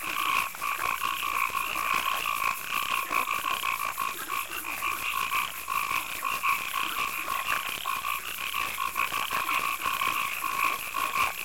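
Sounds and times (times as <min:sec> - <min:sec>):
frogs calling in a pulsing chorus in a night marsh: 0:00.0 - 0:11.4.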